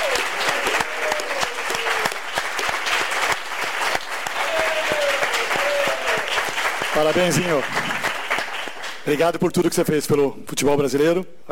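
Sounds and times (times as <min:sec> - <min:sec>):
audience applause: 0:00.0 - 0:09.2
speech: 0:07.0 - 0:07.8, 0:09.0 - 0:11.5.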